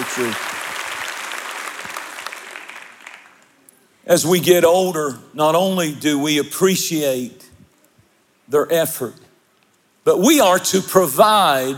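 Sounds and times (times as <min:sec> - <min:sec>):
audience clapping: 0:00.0 - 0:03.7
speech: 0:00.2 - 0:00.5, 0:04.1 - 0:07.5, 0:08.5 - 0:09.2, 0:10.0 - 0:11.7.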